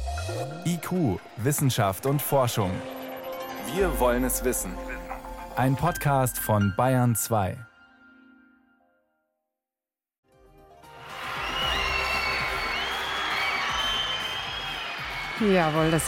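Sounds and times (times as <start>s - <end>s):
speech: 0.3s - 3.0s, 3.6s - 5.0s, 5.6s - 7.7s, 15.4s - 16.0s
concert crowd cheering: 10.8s - 16.0s.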